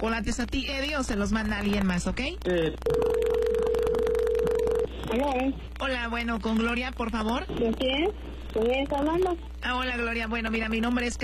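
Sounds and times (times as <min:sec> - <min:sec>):
speech: 0:00.0 - 0:03.4, 0:05.1 - 0:11.2
steady telephone tone while a call is placed: 0:02.8 - 0:04.9.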